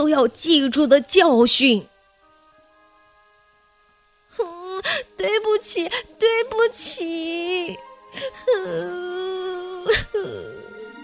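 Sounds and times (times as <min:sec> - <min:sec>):
speech: 0:00.0 - 0:01.9, 0:05.2 - 0:10.7
storyteller voicing wailing cries and sobs of a hungry girl: 0:08.2 - 0:10.8.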